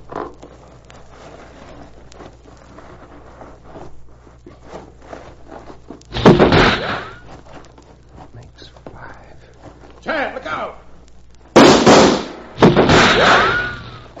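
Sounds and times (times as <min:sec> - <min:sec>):
rustle: 0:00.0 - 0:14.1
thuds: 0:06.0 - 0:08.3, 0:11.6 - 0:14.1
revolver gunshots in a shootout: 0:06.1 - 0:07.2, 0:11.6 - 0:14.1.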